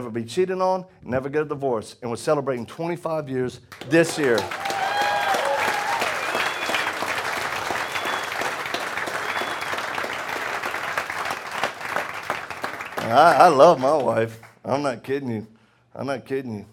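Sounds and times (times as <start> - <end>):
speech: 0.0 - 4.8, 13.1 - 16.7
audience applause: 3.7 - 14.6.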